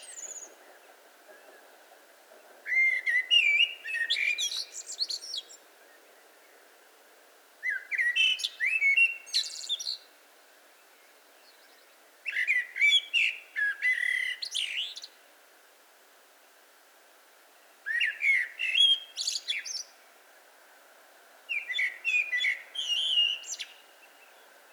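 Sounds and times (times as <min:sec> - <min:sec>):
Eurasian blackbird fluted whistling song: 0:02.7 - 0:05.5, 0:07.7 - 0:10.1, 0:12.3 - 0:15.1, 0:17.9 - 0:19.9, 0:21.5 - 0:23.9.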